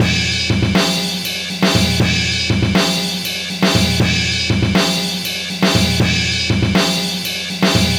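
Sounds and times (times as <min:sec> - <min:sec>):
live reggae drums at 120 BPM: 0:00.0 - 0:07.9.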